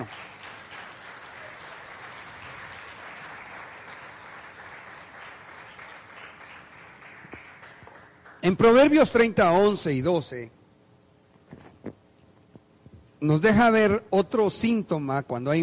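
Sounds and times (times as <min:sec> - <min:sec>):
audience clapping: 0:00.0 - 0:09.2
speech: 0:08.4 - 0:10.6, 0:13.2 - 0:15.6.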